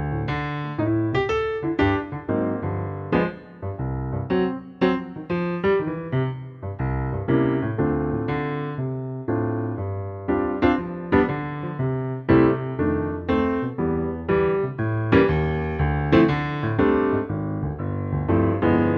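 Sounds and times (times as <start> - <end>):
piano only arrangement in C: 0.0 - 18.9.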